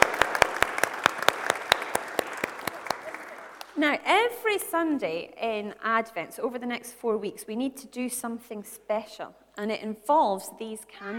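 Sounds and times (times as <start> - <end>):
audience applause: 0.0 - 3.7
speech: 3.8 - 11.1.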